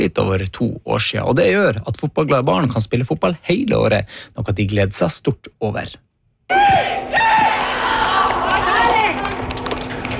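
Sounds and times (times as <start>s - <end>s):
speech: 0.0s - 7.1s
teammates cheering a goal at football training: 6.5s - 10.1s.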